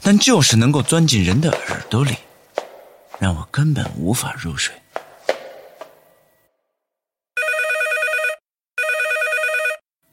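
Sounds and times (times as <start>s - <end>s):
speech: 0.0s - 2.2s, 3.2s - 4.8s
knocking: 0.8s - 3.9s, 5.0s - 6.2s
telephone ringing: 7.4s - 9.9s.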